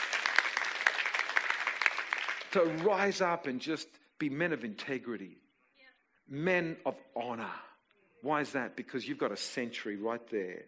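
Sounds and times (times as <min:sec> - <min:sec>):
audience clapping: 0:00.0 - 0:03.4
speech: 0:02.5 - 0:05.4, 0:06.3 - 0:10.6.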